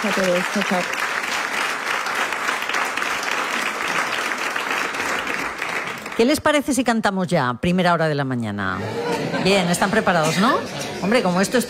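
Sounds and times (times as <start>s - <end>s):
speech: 0.0s - 1.1s, 6.2s - 11.6s
audience applause: 0.0s - 6.2s
laughter: 8.8s - 11.6s.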